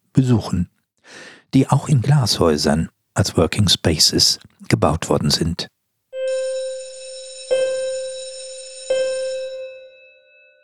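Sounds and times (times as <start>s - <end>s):
speech: 0.2s - 5.8s
school bell ringing: 6.2s - 10.6s.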